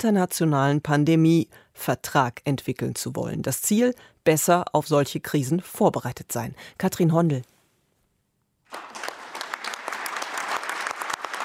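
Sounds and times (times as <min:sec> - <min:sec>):
speech: 0:00.0 - 0:07.5
delegates in Geneva applauding their decision: 0:08.7 - 0:11.4.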